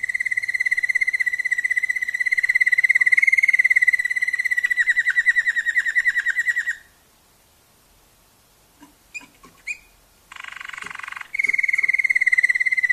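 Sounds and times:
Waterslager canary singing bubbling dipping notes: 0:00.0 - 0:06.9, 0:08.8 - 0:12.9.

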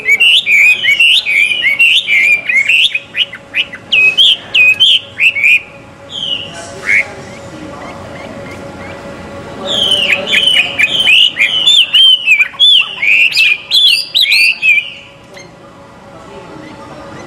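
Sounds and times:
Chinese hwamei song: 0:00.0 - 0:07.1, 0:09.7 - 0:15.5.

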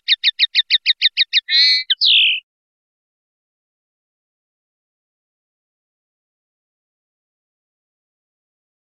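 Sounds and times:
European goldfinch singing: 0:00.0 - 0:02.4.

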